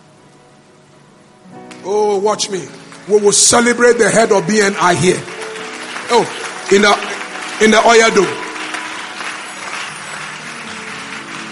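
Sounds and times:
many quick hand claps: 1.7s - 1.9s, 2.7s - 11.4s
speech: 1.8s - 5.4s, 6.1s - 8.4s.

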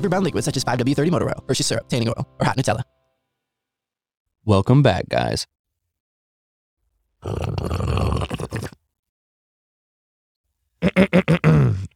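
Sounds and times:
speech: 0.0s - 3.0s, 4.4s - 5.6s, 7.2s - 8.8s, 10.9s - 11.6s
person slurping craft coffee: 7.2s - 8.8s.

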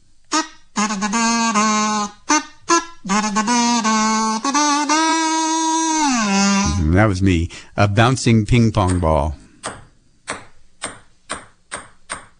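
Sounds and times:
kazoo playing a tune: 0.0s - 7.7s
speech: 7.0s - 9.4s.

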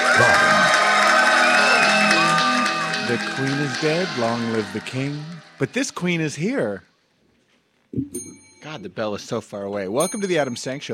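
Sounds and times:
whoops and shouts: 0.0s - 5.4s
crowd cheering and applause: 0.0s - 6.4s
speech: 3.1s - 6.9s, 7.9s - 10.9s.

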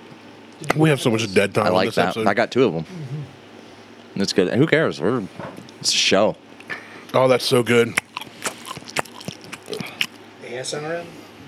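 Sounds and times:
speech: 0.6s - 3.4s, 4.2s - 8.1s, 10.6s - 11.2s
chewing prosciutto: 7.8s - 10.2s.

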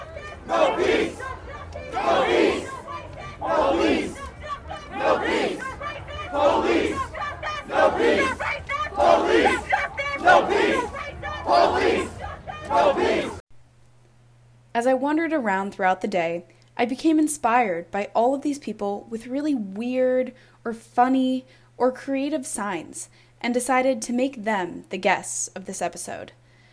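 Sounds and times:
protest crowd chanting: 0.0s - 13.4s
speech: 15.0s - 26.4s.

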